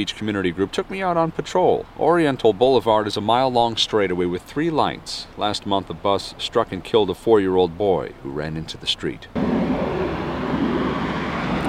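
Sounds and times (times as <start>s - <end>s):
speech: 0.0s - 9.9s
car engine and road noise rumble: 0.0s - 11.6s
car speeding along Oriental Boulevard at about 40 miles per hour: 9.4s - 11.6s.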